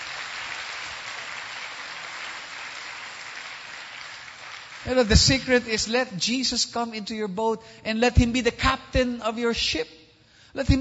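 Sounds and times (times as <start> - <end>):
audience clapping loudly: 0.0 - 5.9
speech: 4.8 - 10.0, 10.6 - 10.7.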